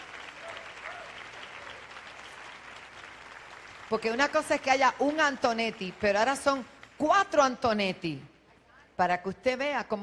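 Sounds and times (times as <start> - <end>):
audience applause: 0.0 - 6.1
speech: 3.9 - 8.3, 9.0 - 10.0.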